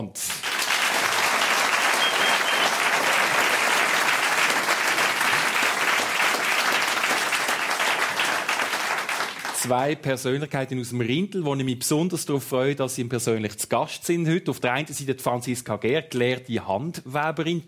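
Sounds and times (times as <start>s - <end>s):
speech: 0.0s - 0.3s, 9.6s - 17.6s
audience applause: 0.3s - 9.7s.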